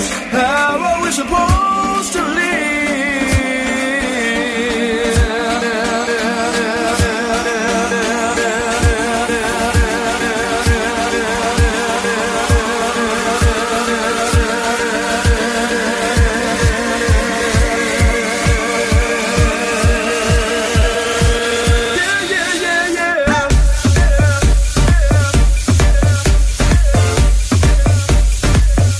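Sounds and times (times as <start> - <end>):
dance remix music: 0.0 - 28.9.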